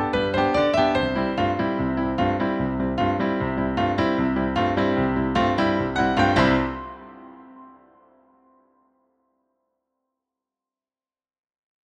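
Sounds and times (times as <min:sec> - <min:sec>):
solo melody: 0:00.0 - 0:08.2.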